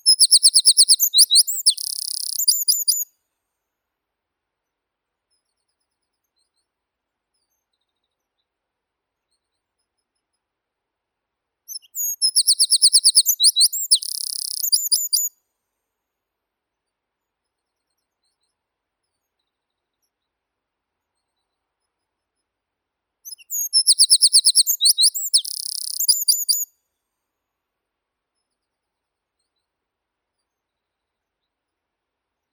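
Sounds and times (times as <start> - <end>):
wren Troglodytes troglodytes: 0.0 - 3.0, 11.7 - 15.3, 23.3 - 26.7.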